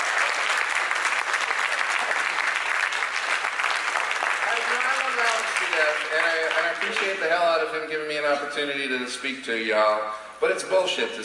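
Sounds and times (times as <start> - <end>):
audience applause for the cannabis lawyers: 0.0 - 7.3
speech: 5.8 - 11.2.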